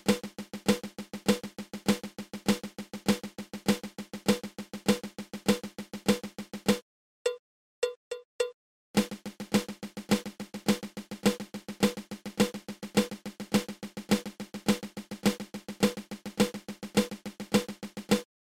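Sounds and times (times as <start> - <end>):
flam paradiddle drum rudiment: 0.0 - 6.8, 9.0 - 18.2.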